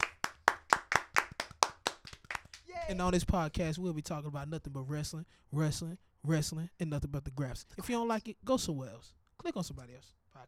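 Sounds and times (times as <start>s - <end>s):
podcast hosts clapping to welcome listeners to a wrestling show: 0.0s - 2.7s
speech: 2.9s - 10.4s.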